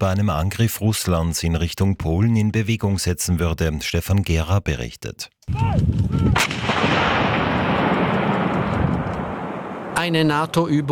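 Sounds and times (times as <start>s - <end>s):
speech: 0.0s - 7.4s, 10.0s - 10.9s
artillery fire or explosion near the border with Belarus: 5.9s - 10.5s.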